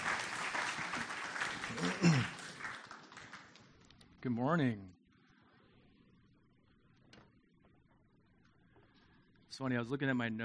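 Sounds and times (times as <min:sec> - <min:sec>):
church congregation clapping welcoming a speaker: 0:00.0 - 0:04.0
speech: 0:04.2 - 0:05.0, 0:09.6 - 0:10.4.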